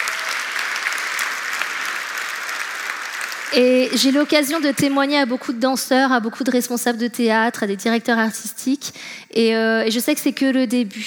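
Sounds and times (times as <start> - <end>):
audience applause: 0.0 - 5.0
speech: 3.5 - 11.0.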